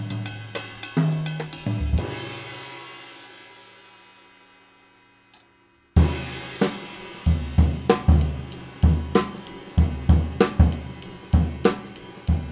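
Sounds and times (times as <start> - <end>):
Paiste Mello cymbal: 0.0 - 5.3, 6.0 - 12.5.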